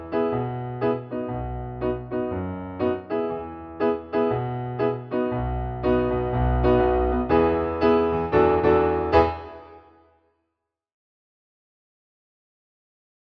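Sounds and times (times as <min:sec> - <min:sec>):
piano piece in E major: 0:00.0 - 0:10.2.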